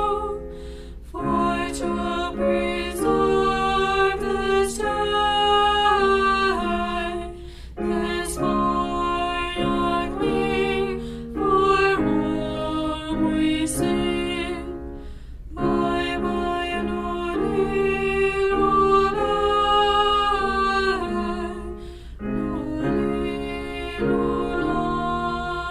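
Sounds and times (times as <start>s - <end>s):
girl alto singing: 1.1s - 25.6s.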